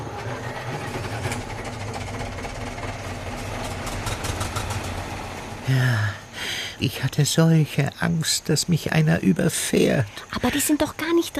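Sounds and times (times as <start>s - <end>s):
12 tractors engines running in a concert: 0.0s - 10.9s
speech: 5.7s - 6.2s, 6.8s - 11.3s.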